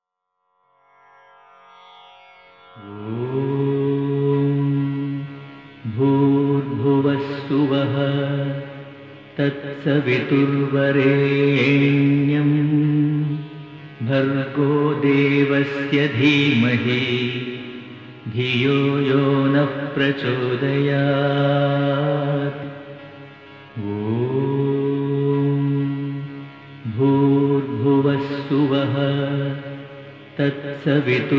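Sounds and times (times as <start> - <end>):
mantra chanting: 2.8 - 31.3.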